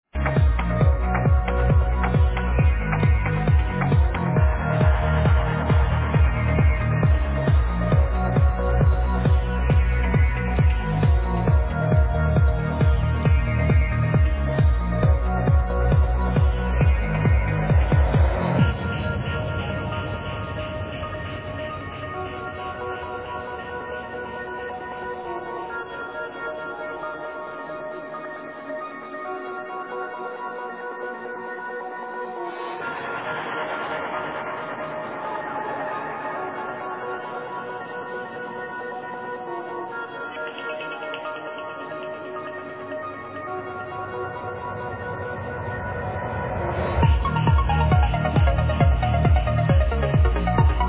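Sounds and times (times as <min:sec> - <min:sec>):
housey trance track: 0:00.1 - 0:50.8.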